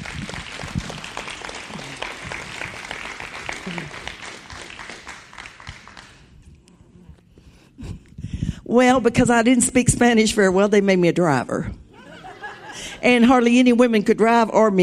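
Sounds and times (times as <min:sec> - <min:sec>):
audience clapping: 0:00.0 - 0:06.4
speech: 0:08.8 - 0:11.8, 0:13.0 - 0:14.8
laughter: 0:12.0 - 0:13.0.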